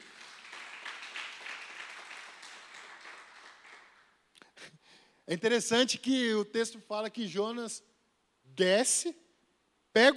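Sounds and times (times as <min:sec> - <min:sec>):
audience applauding: 0:00.0 - 0:04.1
speech: 0:05.3 - 0:07.9, 0:08.6 - 0:09.2, 0:10.0 - 0:10.1.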